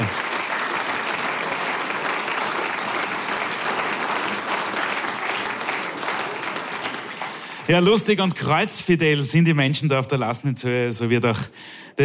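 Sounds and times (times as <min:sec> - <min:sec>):
audience applause: 0:00.0 - 0:08.6
speech: 0:07.7 - 0:12.0.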